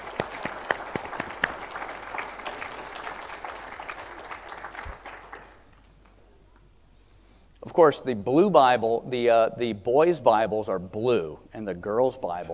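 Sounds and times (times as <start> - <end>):
crowd applauding: 0.0 - 5.8
speech: 7.8 - 12.5.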